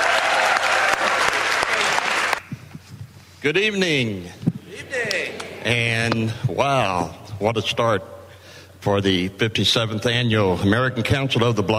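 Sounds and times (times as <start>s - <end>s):
audience at the 57th annual American Council of the Blind convention applauding: 0.0s - 2.5s
speech: 3.4s - 8.1s, 8.8s - 11.7s.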